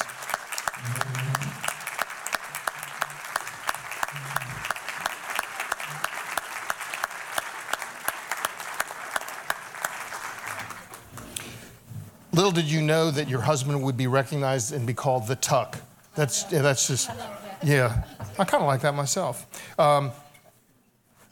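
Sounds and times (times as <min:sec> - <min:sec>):
audience applause: 0:00.0 - 0:11.4
speech: 0:12.5 - 0:20.2
laughter: 0:16.2 - 0:18.6.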